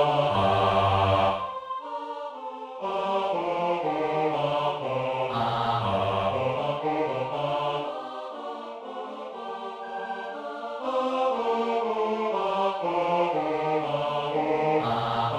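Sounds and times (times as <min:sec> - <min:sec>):
bass opera singing: 0:00.0 - 0:01.6, 0:02.8 - 0:08.0, 0:09.9 - 0:15.3.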